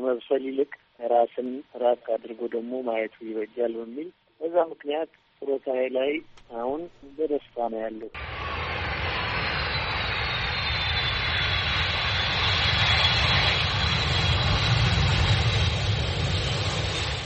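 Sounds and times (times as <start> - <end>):
faint high whine: 0.0 - 17.2
speech: 0.1 - 9.0
airplane engine in flight approaching Addis Ababa Bole airport: 8.2 - 17.2.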